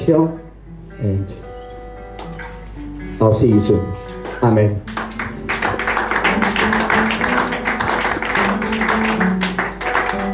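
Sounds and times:
low sustained musical notes: 0:00.0 - 0:10.3
speech: 0:00.1 - 0:00.4, 0:01.0 - 0:01.5, 0:03.2 - 0:05.0
audience clapping: 0:04.8 - 0:10.3.

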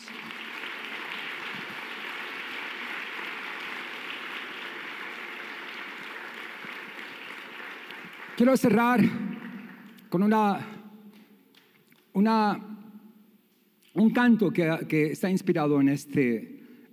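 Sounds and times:
audience applause and ovation: 0:00.0 - 0:09.8
speech: 0:08.4 - 0:09.2, 0:10.1 - 0:10.7, 0:12.2 - 0:12.7, 0:14.0 - 0:16.9.

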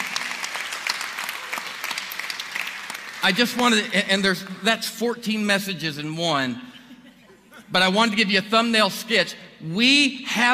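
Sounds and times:
audience applauding: 0:00.0 - 0:04.7
speech: 0:03.2 - 0:06.7, 0:07.7 - 0:10.5.

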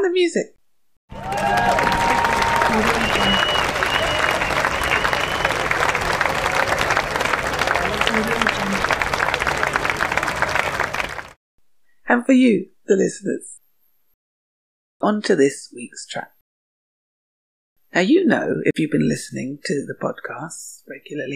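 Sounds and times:
speech: 0:00.1 - 0:00.6, 0:02.7 - 0:03.5, 0:12.1 - 0:13.6, 0:15.0 - 0:16.4, 0:17.9 - 0:21.3
applause: 0:01.1 - 0:11.4
murmuring: 0:01.6 - 0:11.0.

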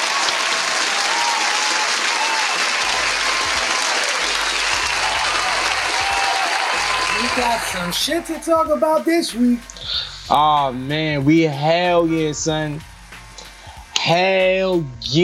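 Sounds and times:
crowd applause: 0:00.0 - 0:09.1
speech: 0:07.4 - 0:12.9, 0:14.1 - 0:15.2.

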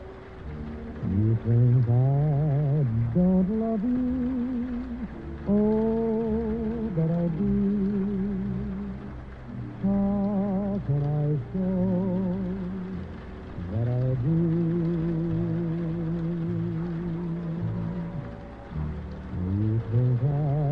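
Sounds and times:
oldies music playing in another room: 0:00.0 - 0:20.7
rain: 0:00.0 - 0:20.7.

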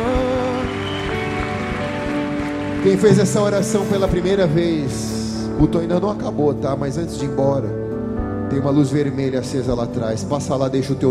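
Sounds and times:
church audience applauding: 0:00.0 - 0:04.3
sustained music tones: 0:00.1 - 0:05.3
speech: 0:02.8 - 0:07.8, 0:08.5 - 0:11.0.

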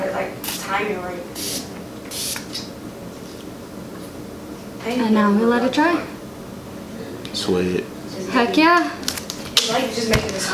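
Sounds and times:
speech: 0:00.8 - 0:01.6, 0:04.8 - 0:06.2, 0:07.4 - 0:09.0, 0:09.7 - 0:10.5
water mist sprayed onto a face from a spray bottle: 0:01.4 - 0:02.6.

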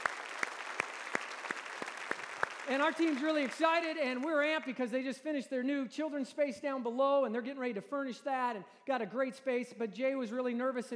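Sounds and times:
audience applause: 0:00.0 - 0:04.4
speech: 0:02.7 - 0:10.9.

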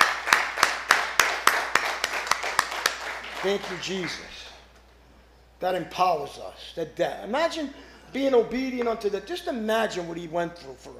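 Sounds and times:
audience clapping: 0:00.0 - 0:04.5
faint hiss: 0:00.0 - 0:10.9
speech: 0:03.4 - 0:04.5, 0:05.6 - 0:10.9.

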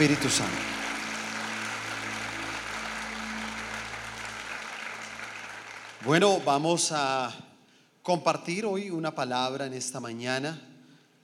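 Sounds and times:
speech: 0:00.0 - 0:00.8, 0:06.0 - 0:10.7
audience applause: 0:00.0 - 0:06.8.

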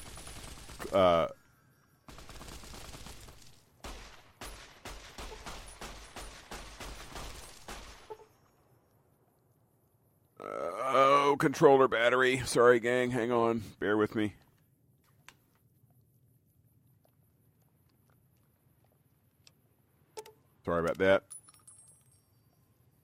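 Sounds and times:
speech: 0:00.9 - 0:01.4, 0:11.4 - 0:14.4, 0:20.8 - 0:21.4
video game gun firing rapidly: 0:02.1 - 0:08.2.

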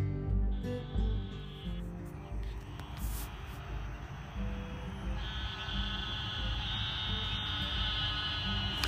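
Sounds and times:
steady high insect-like whine: 0:00.5 - 0:08.8
chorus of bullfrogs croaking in a creek at night: 0:00.6 - 0:08.8.

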